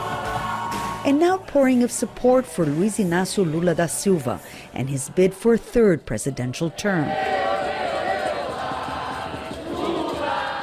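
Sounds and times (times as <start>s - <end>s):
thousands of supporters cheering at Lula's campaign rally in São Paulo: 0.0s - 3.7s, 6.9s - 10.6s
speech: 1.0s - 7.4s.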